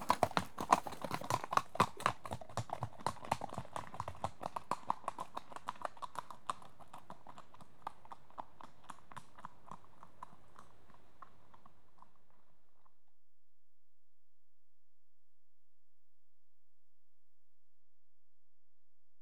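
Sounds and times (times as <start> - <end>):
two horses cantering on approach: 0.0 - 13.0.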